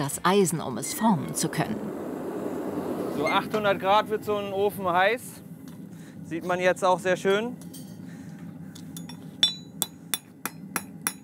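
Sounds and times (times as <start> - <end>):
speech: 0.0 - 2.1, 3.2 - 5.4, 6.3 - 7.7
farrier hammering hot horseshoe metal on an anvil: 9.0 - 11.2.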